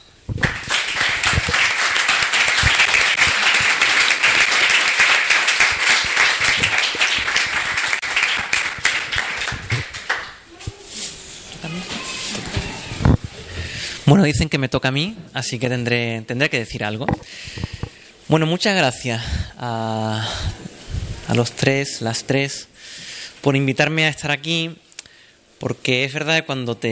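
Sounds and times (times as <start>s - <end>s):
audience applause: 0.3s - 10.5s
speech: 14.2s - 17.3s, 18.3s - 20.5s, 21.3s - 22.7s, 23.4s - 24.8s, 25.6s - 26.9s.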